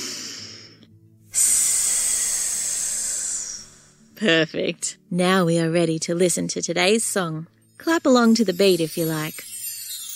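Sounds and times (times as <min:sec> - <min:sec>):
person hissing like a snake: 0:00.0 - 0:04.0
person inhaling: 0:00.0 - 0:04.1
speech: 0:04.2 - 0:09.5.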